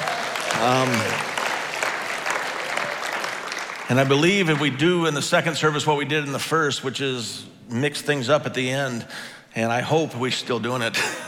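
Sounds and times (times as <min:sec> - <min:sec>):
audience applause: 0:00.0 - 0:04.8
speech: 0:00.6 - 0:01.2, 0:03.9 - 0:11.2.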